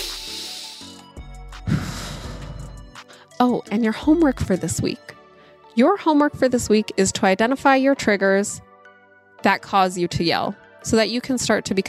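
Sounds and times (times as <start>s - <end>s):
deep breath: 0.0s - 1.0s, 1.6s - 3.3s, 5.3s - 5.6s
speech: 3.4s - 5.1s, 5.8s - 8.7s, 9.4s - 11.8s.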